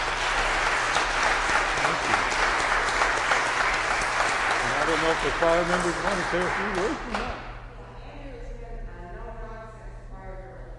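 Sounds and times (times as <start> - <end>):
audience applause: 0.0 - 7.4
speech: 5.1 - 7.4.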